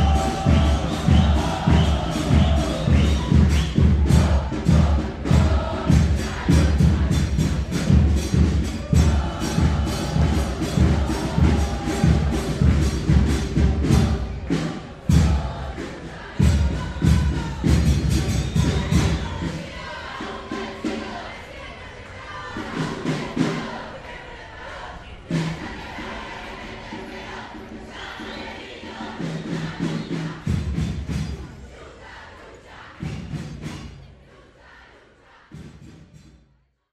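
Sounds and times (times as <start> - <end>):
crowd protesting at an escrache: 0.0 - 35.9.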